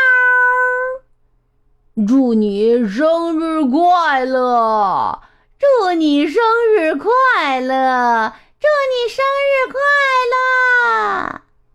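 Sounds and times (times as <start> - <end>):
black cat meowing: 0.0 - 1.1
speech: 2.0 - 11.4.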